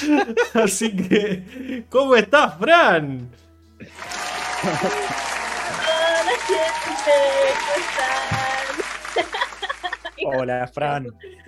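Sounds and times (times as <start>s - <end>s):
laughter: 0.0s - 1.4s, 3.9s - 10.6s
speech: 0.0s - 5.4s, 6.4s - 9.5s, 10.2s - 11.4s
audience applause: 3.9s - 10.3s.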